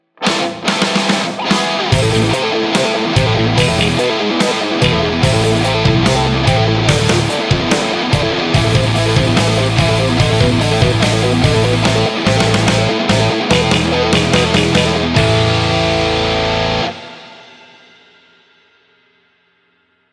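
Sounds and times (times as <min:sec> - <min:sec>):
neoclassical metal music: 0:00.2 - 0:17.9.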